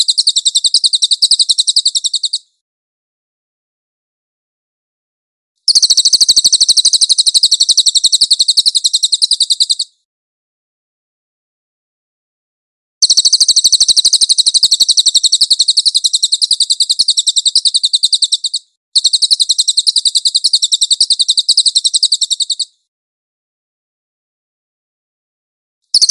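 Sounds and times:
cililin chattering trills: 0:00.0 - 0:02.4, 0:05.7 - 0:09.9, 0:13.0 - 0:22.7.

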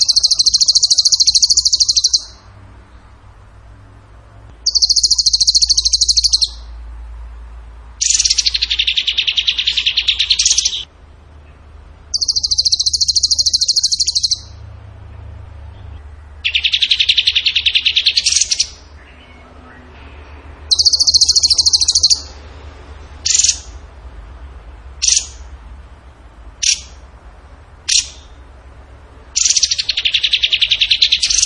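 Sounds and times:
bird trilling: 0:00.0 - 0:02.5, 0:04.6 - 0:06.8, 0:08.0 - 0:10.9, 0:12.1 - 0:14.6, 0:16.4 - 0:20.0, 0:20.7 - 0:22.4, 0:23.2 - 0:23.9, 0:25.0 - 0:25.5, 0:26.6 - 0:27.0, 0:27.8 - 0:28.4, 0:29.4 - 0:31.4.

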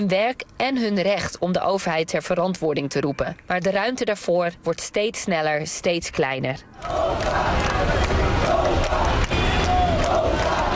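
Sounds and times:
speech: 0:00.0 - 0:09.2
street crowd chanting campaign slogan: 0:06.8 - 0:10.7.

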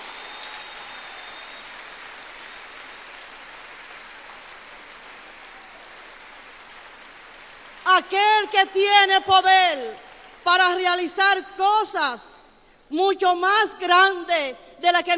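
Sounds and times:
audience applauding: 0:00.0 - 0:07.9
speech: 0:08.0 - 0:12.3, 0:12.9 - 0:15.1.

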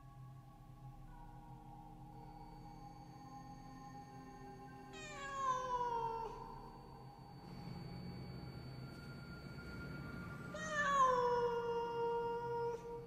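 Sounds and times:
cat yowling: 0:05.0 - 0:06.6, 0:10.5 - 0:13.0.

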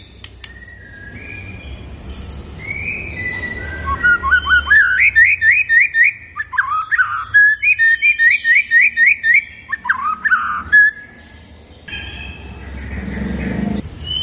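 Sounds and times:
White-rumped shama singing: 0:00.0 - 0:14.2.

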